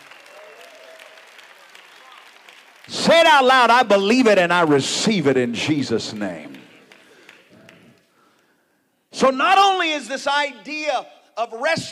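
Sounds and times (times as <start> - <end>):
audience clapping hands: 0.0 - 4.7, 5.4 - 8.5
speech: 2.9 - 6.5, 9.2 - 11.9.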